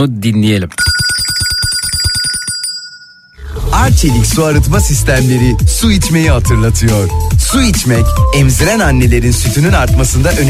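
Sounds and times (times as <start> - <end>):
speech: 0.0 - 0.8, 3.8 - 10.4
bright electronic phone ringtone: 0.8 - 3.4.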